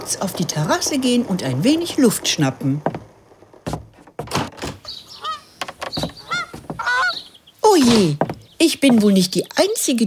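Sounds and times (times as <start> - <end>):
speech: 0.1 - 3.0, 7.8 - 10.0
greylag goose honking: 4.9 - 7.4.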